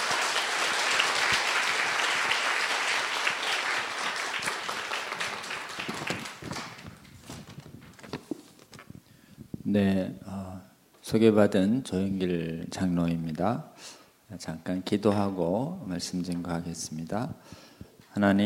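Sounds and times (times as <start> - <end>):
large crowd applauding to welcome a speaker: 0.0 - 7.1
speech: 9.7 - 10.2, 11.1 - 17.6, 18.2 - 18.4.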